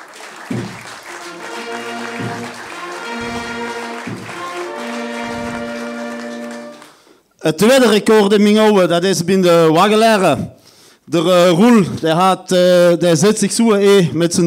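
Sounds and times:
audience applause: 0.0s - 6.9s
band music with thumping bass beats: 0.5s - 6.8s
speech: 7.5s - 14.4s.

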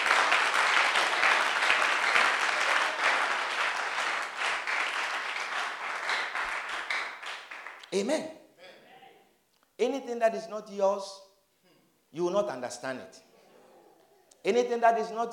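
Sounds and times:
audience clapping hands: 0.0s - 8.0s
speech: 8.0s - 8.4s, 9.8s - 11.2s, 12.1s - 13.3s, 14.4s - 15.3s.

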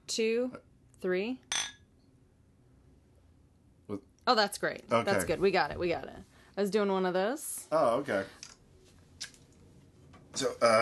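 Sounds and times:
speech: 0.1s - 1.5s, 3.9s - 8.4s, 10.4s - 10.8s
glasses clinking together: 1.5s - 1.8s.

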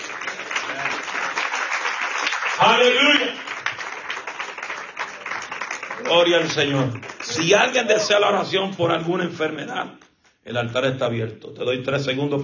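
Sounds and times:
audience applause: 0.0s - 8.4s
speech: 2.6s - 3.4s, 6.1s - 12.4s.

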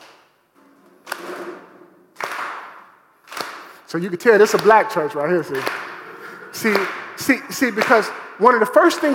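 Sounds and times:
audience clapping hands: 2.1s - 9.1s
speech: 3.9s - 5.8s, 6.6s - 9.1s.

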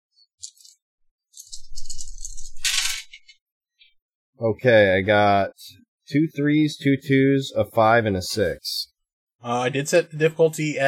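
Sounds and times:
dice rattling: 1.4s - 3.2s
speech: 4.4s - 10.8s.

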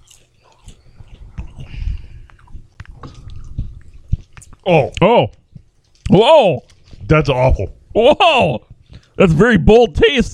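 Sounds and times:
chewing a grilled seaweed snack from Thailand: 0.0s - 7.4s
speech: 4.7s - 5.4s, 6.1s - 10.3s.

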